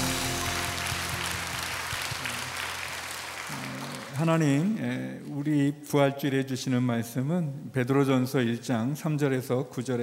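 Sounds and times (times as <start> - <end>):
congregation applauding during an Easter Sunday church service: 0.0 - 4.8
speech: 4.2 - 10.0.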